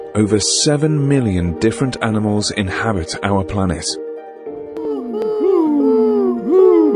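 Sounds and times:
speech: 0.2s - 4.1s
burrowing owl call: 4.8s - 6.9s.

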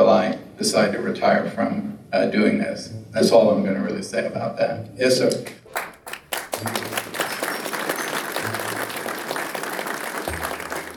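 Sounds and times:
speech: 0.2s - 5.9s, 6.6s - 6.9s
audience applause: 5.7s - 10.9s.

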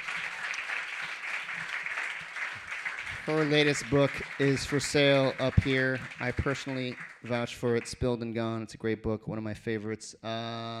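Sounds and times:
audience applause: 0.0s - 8.1s
speech: 3.2s - 10.7s.

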